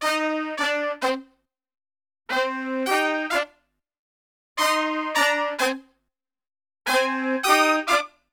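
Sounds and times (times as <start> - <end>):
pop brass: 0.0 - 1.4, 2.3 - 3.6, 4.6 - 6.0, 6.9 - 8.3.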